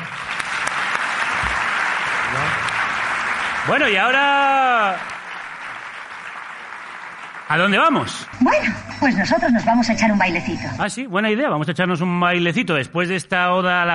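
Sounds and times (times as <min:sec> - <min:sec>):
audience applause: 0:00.0 - 0:09.1
speech: 0:03.7 - 0:05.1, 0:07.5 - 0:13.9.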